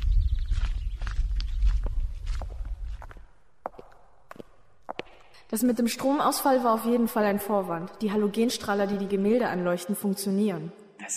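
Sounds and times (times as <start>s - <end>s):
footsteps of people walking into an art museum: 0.5s - 5.4s
speech: 5.5s - 11.1s.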